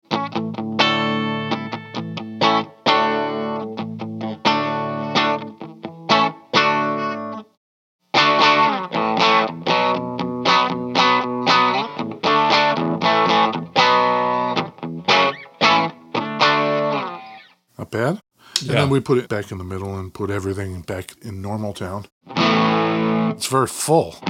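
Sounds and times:
hollow-body electric guitar with trebly tone playing chords: 0:00.0 - 0:17.5, 0:22.2 - 0:23.4
speech: 0:17.9 - 0:22.4, 0:23.4 - 0:24.2.

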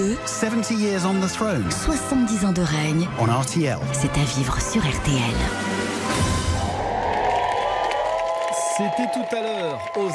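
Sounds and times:
speech: 0:00.0 - 0:05.8, 0:08.8 - 0:10.1
crowd cheering outside Buckingham Palace at Queen Elizabeth II's Platinum Jubilee: 0:06.1 - 0:10.1.

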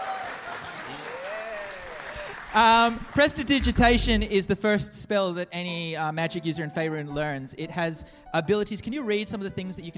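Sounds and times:
audience applause: 0:00.0 - 0:03.6
speech: 0:02.5 - 0:09.9.

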